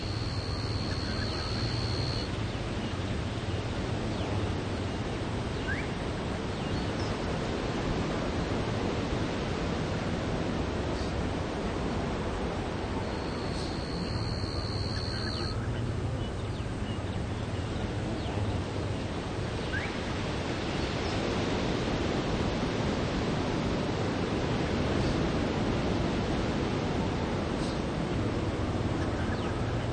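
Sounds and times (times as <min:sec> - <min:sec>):
cicadas: 0:00.0 - 0:05.9, 0:13.0 - 0:16.9
distant tropical birds: 0:00.0 - 0:07.4, 0:13.0 - 0:21.3
slow smooth waves coming in on an island beach: 0:00.0 - 0:29.9.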